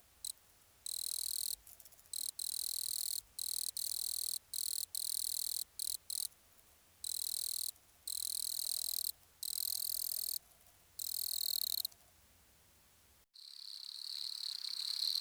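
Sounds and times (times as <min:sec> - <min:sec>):
wood cricket Nemobius sylvestris song: 0:00.9 - 0:06.3, 0:07.0 - 0:10.4, 0:11.0 - 0:11.9, 0:13.4 - 0:15.1.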